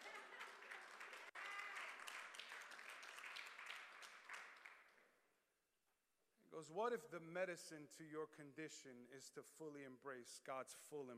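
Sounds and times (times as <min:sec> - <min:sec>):
few people clapping: 0:00.0 - 0:05.2
speech: 0:06.6 - 0:11.1.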